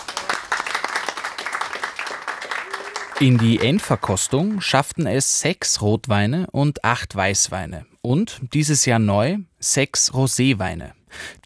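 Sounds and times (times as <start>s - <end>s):
audience applause: 0.0s - 4.7s
speech: 3.2s - 11.4s.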